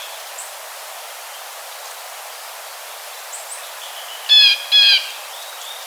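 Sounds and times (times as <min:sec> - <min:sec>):
blue jay calling: 0:04.3 - 0:05.1.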